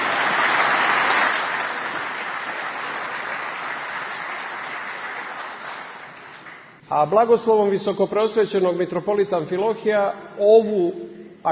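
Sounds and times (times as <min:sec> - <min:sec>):
crowd applause after a hockey team's victory ceremony at the Olympic Games in Korea: 0:00.0 - 0:06.8
speech: 0:06.9 - 0:11.5.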